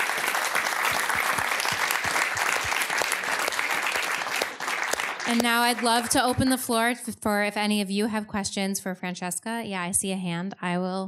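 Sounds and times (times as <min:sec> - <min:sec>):
audience applause: 0:00.0 - 0:06.5
speech: 0:05.3 - 0:11.0.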